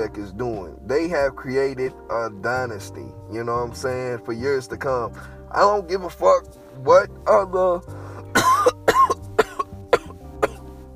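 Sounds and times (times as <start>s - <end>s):
speech: 0.0s - 8.0s
raspy coughing fit after smoking weed: 8.3s - 10.7s.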